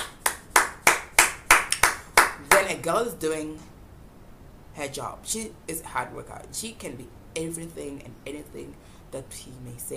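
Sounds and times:
applause: 0.0 - 2.7
speech: 2.7 - 3.7, 4.8 - 9.9.

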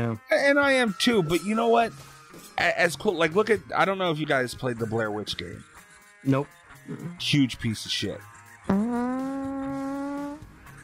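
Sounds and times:
speech: 0.0 - 9.1
fart: 8.7 - 10.5.

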